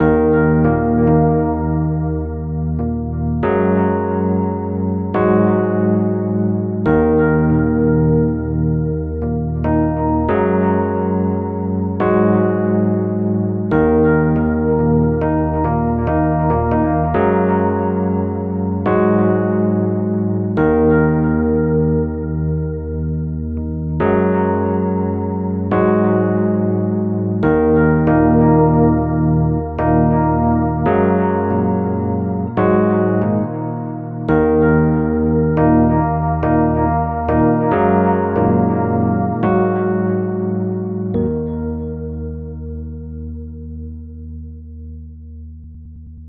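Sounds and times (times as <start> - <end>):
Rhodes electric piano: 0.0 - 45.5.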